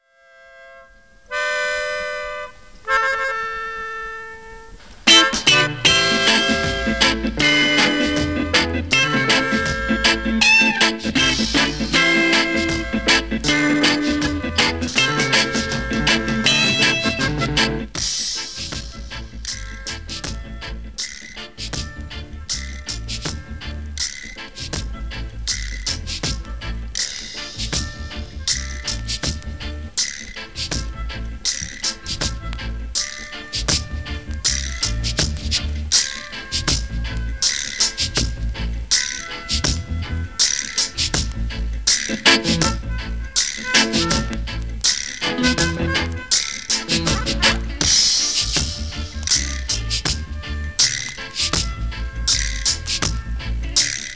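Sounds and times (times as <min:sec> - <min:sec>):
jazz music: 0:01.5 - 0:54.1.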